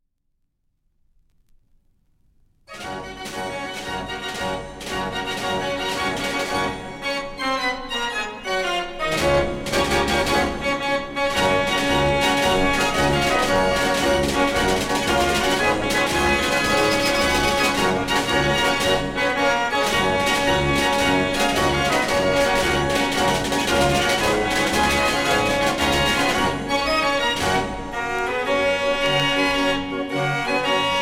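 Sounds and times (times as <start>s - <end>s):
Dutch street barrel organ playing: 2.8s - 31.0s.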